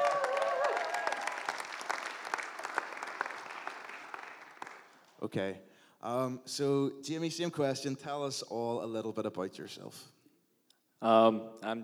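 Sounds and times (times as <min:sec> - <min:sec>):
audience applause: 0:00.0 - 0:05.2
speech: 0:05.2 - 0:10.2, 0:11.0 - 0:11.8.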